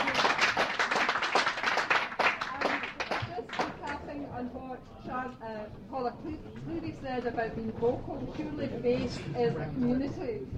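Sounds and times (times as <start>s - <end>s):
audience applause: 0.0s - 3.9s
speech: 5.2s - 10.5s.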